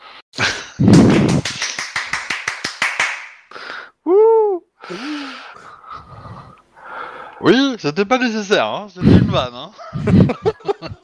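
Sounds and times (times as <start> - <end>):
applause: 0.9 - 3.4
speech: 7.4 - 11.0
laughter: 9.8 - 11.0.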